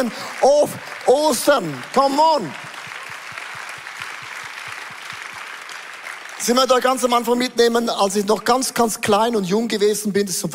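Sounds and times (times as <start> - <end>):
speech: 0.0 - 2.7, 6.4 - 10.5
audience applause: 0.0 - 7.5.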